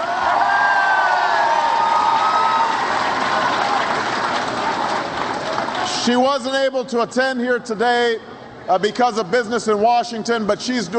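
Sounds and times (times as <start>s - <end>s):
large crowd applauding and cheering: 0.0s - 6.1s
speech: 6.1s - 10.9s.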